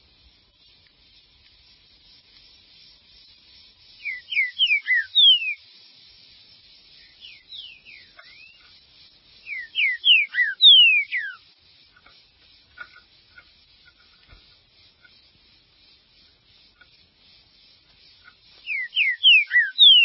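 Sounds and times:
green-winged saltator whistled song: 1.8s - 5.8s, 6.5s - 12.1s, 14.9s - 20.0s.

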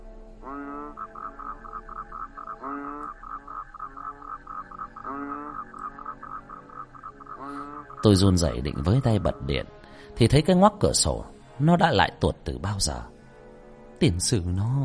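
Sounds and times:
toads and frogs croaking outside: 0.0s - 10.1s
speech: 8.0s - 13.1s, 14.0s - 14.8s.

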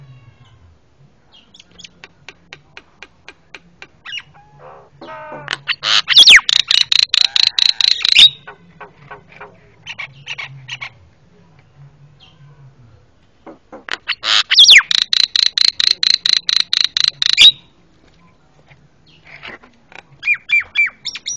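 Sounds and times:
Javan myna harsh rattling calls: 4.1s - 8.5s, 13.9s - 17.6s.

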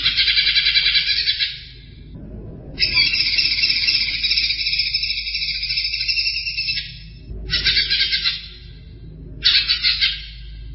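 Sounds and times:
greater green leafbird twittering: 0.0s - 2.0s, 2.8s - 10.7s
soft low hum: 0.0s - 10.7s.

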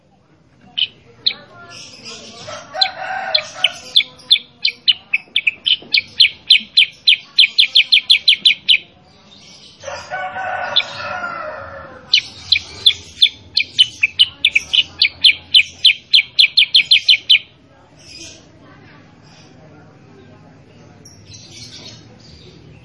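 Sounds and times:
sooty-headed bulbul song: 0.7s - 9.8s, 12.1s - 18.4s.

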